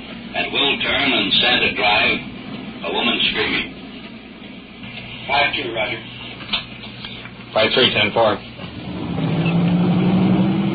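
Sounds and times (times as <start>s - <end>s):
speech: 0.4s - 3.8s, 5.3s - 6.1s, 7.6s - 8.5s
police car engine rising as it pulls away: 8.6s - 10.7s.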